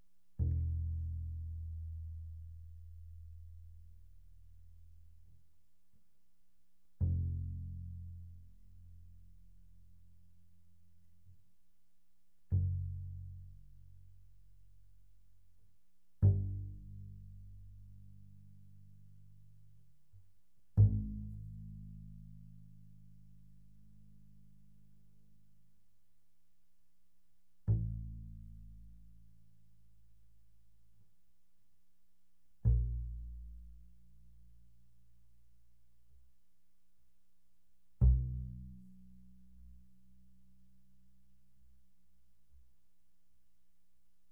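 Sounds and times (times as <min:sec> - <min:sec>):
double bass pizzicato mezzo forte on E: 0:00.4 - 0:05.6, 0:06.9 - 0:11.5, 0:12.4 - 0:25.8, 0:27.6 - 0:31.2, 0:32.6 - 0:36.4, 0:37.9 - 0:42.6.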